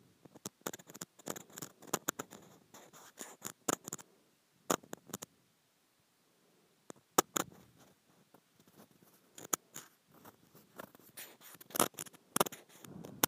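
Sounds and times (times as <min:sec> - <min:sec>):
plastic being scratched: 0:00.3 - 0:04.0, 0:07.2 - 0:13.2.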